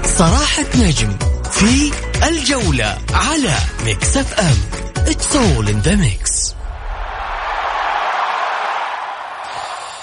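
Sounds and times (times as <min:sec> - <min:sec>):
speech: 0:00.2 - 0:06.6
stadium crowd of fans: 0:06.6 - 0:10.0.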